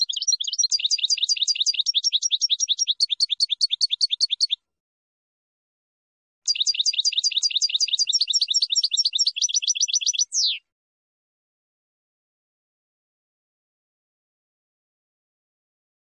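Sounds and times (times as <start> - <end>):
finch song: 0.0 - 4.7, 6.5 - 10.7.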